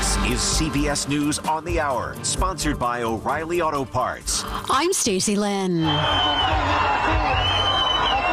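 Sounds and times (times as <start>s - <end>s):
speech: 0.2s - 7.8s
crowd cheering as the first hostages are released by Hamas: 5.8s - 8.3s.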